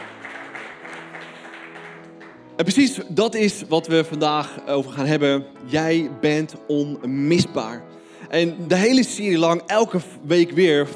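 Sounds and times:
audience applause: 0.0 - 2.4
speech: 2.6 - 10.9.

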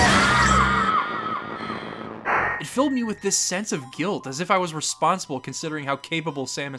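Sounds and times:
video game character's death scream: 0.0 - 2.0
speech: 2.6 - 6.7.

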